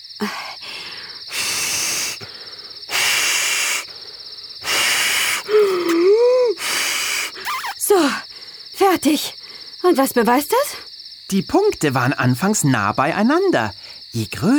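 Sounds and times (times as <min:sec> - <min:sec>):
speech: 0:00.2 - 0:00.5, 0:08.9 - 0:14.5
breath blown into balloon: 0:00.2 - 0:04.0, 0:04.6 - 0:07.8.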